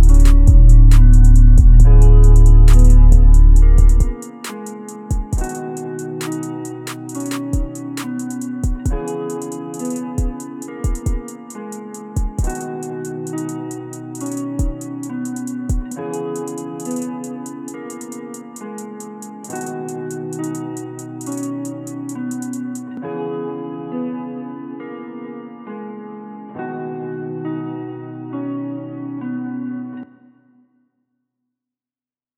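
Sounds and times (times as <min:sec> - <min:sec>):
bass boosted beats: 0:00.0 - 0:04.2.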